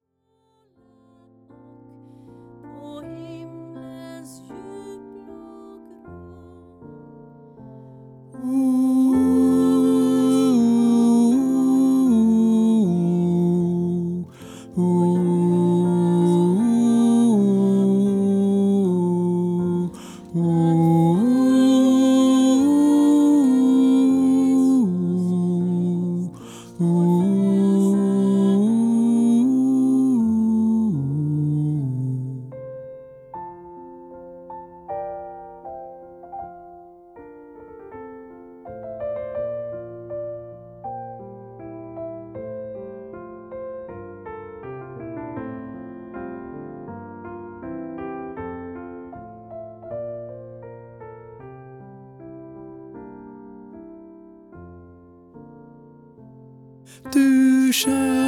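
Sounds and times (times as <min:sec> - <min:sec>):
tenor singing: 0:08.4 - 0:32.6, 0:56.9 - 0:58.2.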